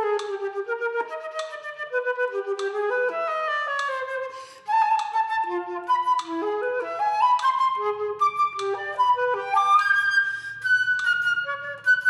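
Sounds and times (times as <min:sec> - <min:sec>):
flute practice: 0:00.0 - 0:12.0.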